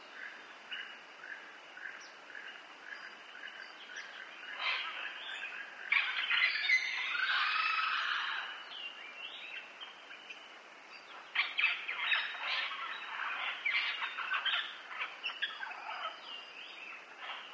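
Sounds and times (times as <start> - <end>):
green parrots calling: 3.6 - 8.8, 11.1 - 17.5.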